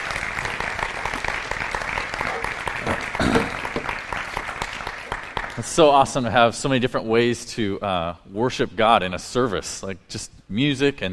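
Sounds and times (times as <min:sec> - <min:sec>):
audience applause: 0:00.0 - 0:05.9
speech: 0:05.6 - 0:11.1.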